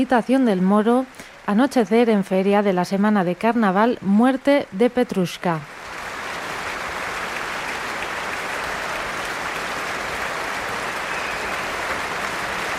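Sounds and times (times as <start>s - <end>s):
speech: 0.0s - 5.8s
concert hall applause after orchestra performance: 5.7s - 12.7s.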